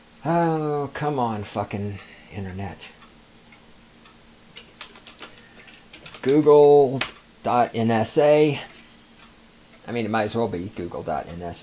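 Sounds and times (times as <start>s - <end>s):
speech: 0.2s - 3.0s, 6.2s - 8.7s, 9.8s - 11.6s
typing on a computer keyboard to search the web: 3.3s - 3.7s, 4.5s - 7.3s.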